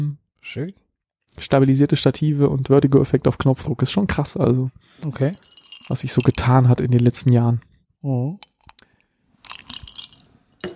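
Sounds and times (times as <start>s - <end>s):
speech: 0.0s - 0.8s, 1.4s - 8.5s
ice cubes clinking in a glass: 5.4s - 6.6s, 9.4s - 10.2s.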